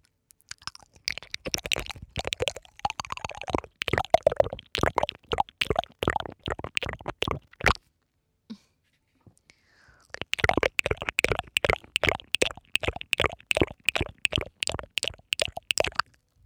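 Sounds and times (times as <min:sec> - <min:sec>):
ASMR water spraying onto the ear: 0:00.7 - 0:07.8, 0:10.2 - 0:16.0.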